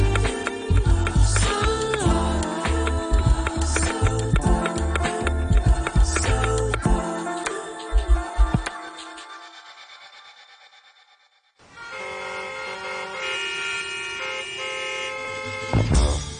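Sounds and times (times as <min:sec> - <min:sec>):
music: 0:00.0 - 0:09.8, 0:15.6 - 0:16.3
car horns honking in an after-work traffic jam: 0:11.7 - 0:16.3.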